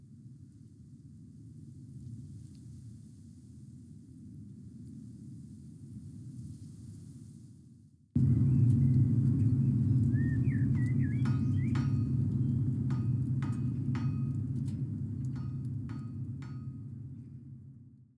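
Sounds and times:
ambience: 0:08.2 - 0:17.5.

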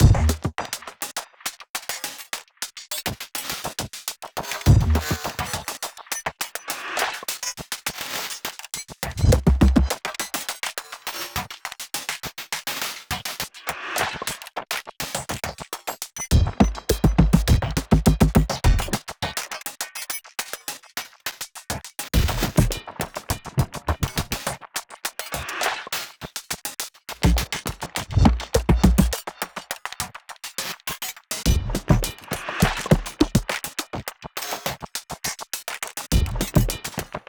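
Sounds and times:
drum music: 0:00.0 - 0:00.5, 0:04.7 - 0:05.3, 0:09.2 - 0:10.0, 0:16.3 - 0:19.0, 0:22.2 - 0:24.3, 0:27.1 - 0:29.3, 0:31.5 - 0:33.6, 0:36.1 - 0:37.2.

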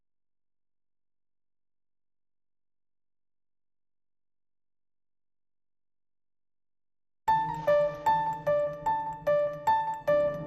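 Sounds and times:
piano intro: 0:07.3 - 0:10.4.

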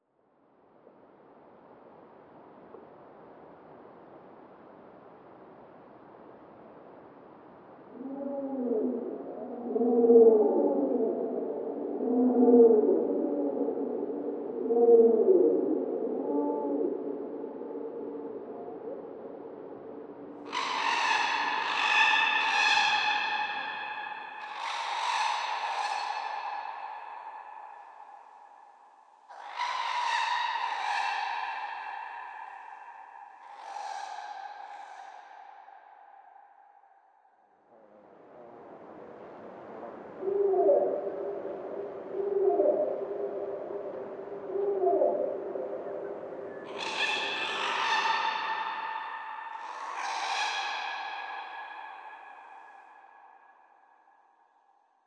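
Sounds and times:
jungle animals calling: 0:07.9 - 0:28.2, 0:29.3 - 0:35.6, 0:38.4 - 0:53.5.

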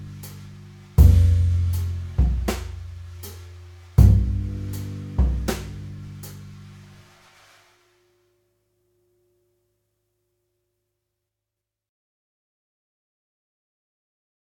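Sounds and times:
bass at 80 bpm: 0:00.0 - 0:07.4
drums at 80 bpm: 0:00.0 - 0:07.8.

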